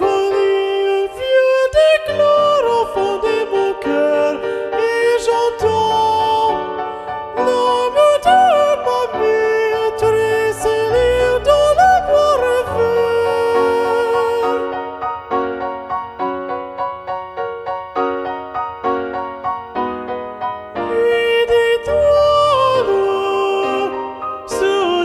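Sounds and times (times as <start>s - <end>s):
second soprano voice of SSA choir singing: 0.0s - 25.0s.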